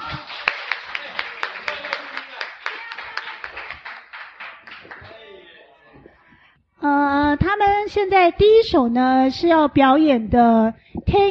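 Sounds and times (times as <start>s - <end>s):
audience applauding performers in a steady rhythmic beat: 0.0s - 5.6s
speech: 6.8s - 11.2s.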